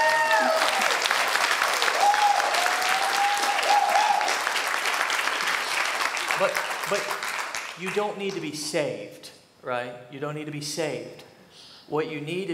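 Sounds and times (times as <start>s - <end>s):
audience applause: 0.0s - 8.4s
speech: 6.4s - 7.2s, 7.8s - 11.3s, 11.9s - 12.5s.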